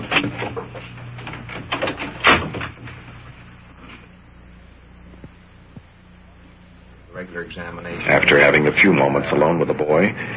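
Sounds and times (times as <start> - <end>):
door pushed shut: 0.0 - 3.0
rattling and handling noise: 0.0 - 3.2
steady low hum: 0.0 - 10.3
speech: 7.4 - 10.3.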